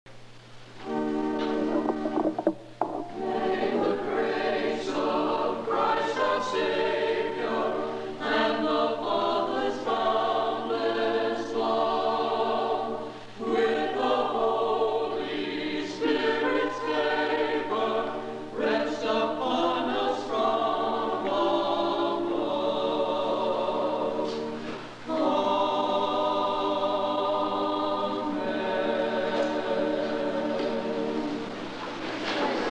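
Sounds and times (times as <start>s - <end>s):
choral response: 0.8s - 32.6s.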